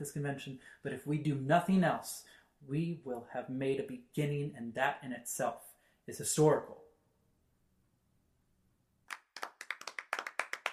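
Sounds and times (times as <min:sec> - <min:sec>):
speech: 0:00.0 - 0:06.8
people clapping politely: 0:09.1 - 0:10.7.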